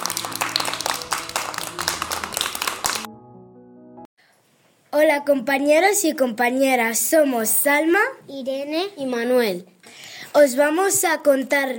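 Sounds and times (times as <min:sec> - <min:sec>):
children in a school programme clapping: 0:00.0 - 0:03.1
speech: 0:05.0 - 0:09.7, 0:10.3 - 0:11.7.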